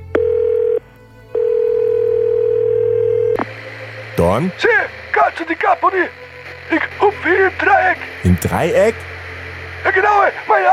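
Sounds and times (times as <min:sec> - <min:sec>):
telephone dial tone: 0:00.0 - 0:03.4
speech: 0:04.3 - 0:09.1, 0:09.8 - 0:10.7.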